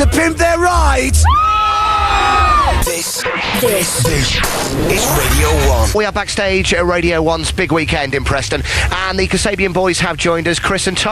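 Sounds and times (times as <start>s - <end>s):
crowd cheering and hollering: 0.0s - 6.0s
speech: 0.2s - 11.0s.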